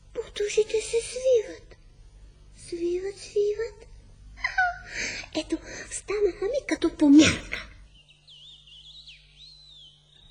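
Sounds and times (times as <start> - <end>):
low steady hum: 0.0 - 10.2
speech: 0.4 - 1.7, 2.7 - 3.9, 5.0 - 7.7
small bird chirping: 7.8 - 10.2.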